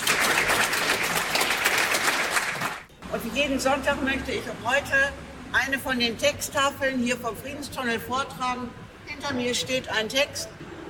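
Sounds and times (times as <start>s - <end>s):
audience applause after a concert: 0.0s - 2.9s
speech: 3.1s - 10.6s.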